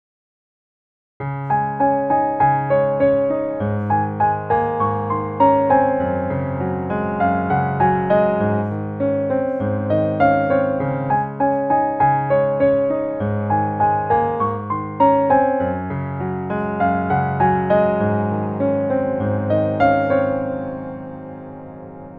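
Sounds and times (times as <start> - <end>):
Steinway piano: 1.2 - 22.1.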